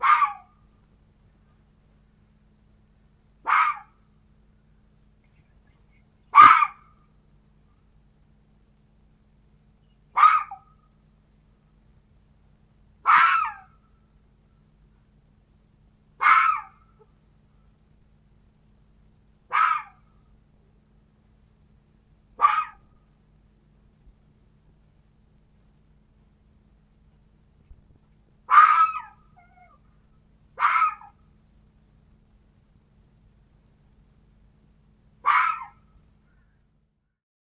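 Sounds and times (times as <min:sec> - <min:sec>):
fox barking: 0:00.0 - 0:00.6, 0:03.4 - 0:04.0, 0:06.3 - 0:07.0, 0:10.1 - 0:10.8, 0:13.0 - 0:13.7, 0:16.2 - 0:17.1, 0:19.5 - 0:20.1, 0:22.4 - 0:22.9, 0:28.5 - 0:29.8, 0:30.6 - 0:31.2, 0:35.2 - 0:35.8.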